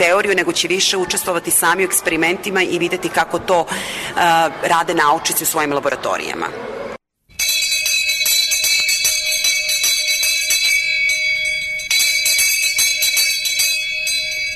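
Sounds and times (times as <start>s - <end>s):
speech: 0.0s - 6.8s
bell ringing: 7.3s - 14.5s.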